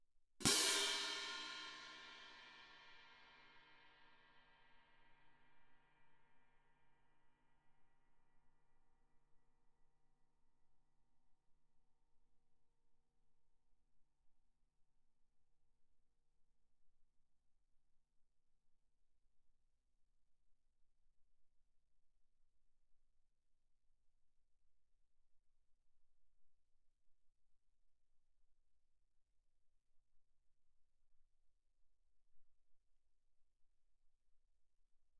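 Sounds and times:
Viennese orchestral crash cymbals played mezzo-forte: 0.4s - 3.2s.

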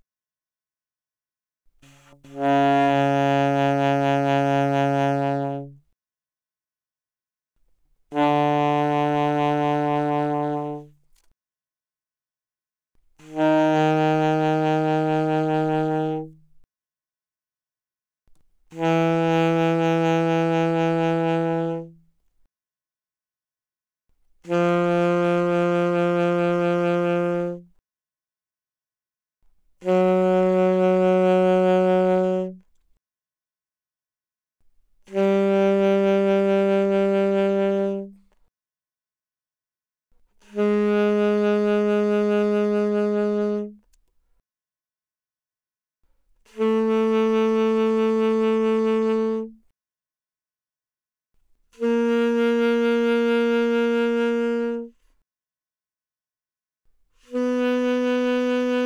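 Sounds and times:
alto saxophone with vibrato mezzo forte: 1.8s - 5.8s, 8.1s - 11.0s, 13.2s - 16.5s, 18.7s - 22.0s, 24.5s - 27.8s, 29.8s - 32.6s, 35.1s - 38.2s, 40.4s - 43.8s, 46.5s - 49.6s, 51.8s - 55.0s, 57.2s - 58.8s.

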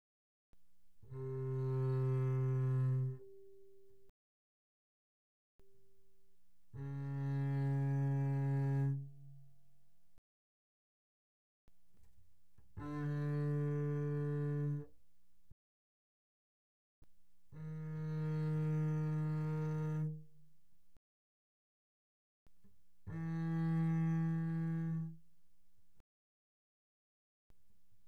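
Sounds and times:
double bass bowed mezzo forte on A string C3 to A3: 1.0s - 4.1s, 6.8s - 9.5s, 12.8s - 14.9s, 17.6s - 20.4s, 23.0s - 25.2s.

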